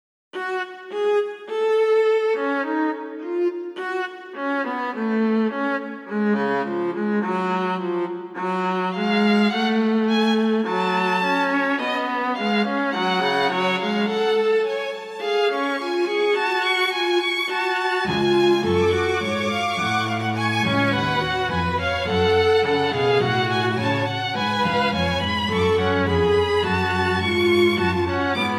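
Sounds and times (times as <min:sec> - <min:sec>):
string trio playing in F sharp minor: 0:00.9 - 0:28.5.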